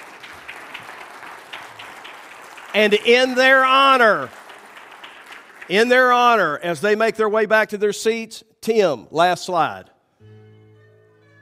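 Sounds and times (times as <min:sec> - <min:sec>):
Central Baptist Church congregation clapping: 0:00.0 - 0:07.2
speech: 0:02.8 - 0:04.4, 0:05.7 - 0:10.4.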